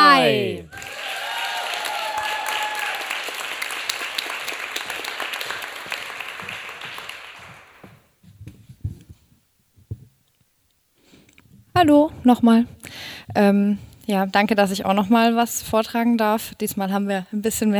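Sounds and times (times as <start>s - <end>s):
thunderous audience applause: 0.0s - 8.0s
speech: 11.8s - 17.7s.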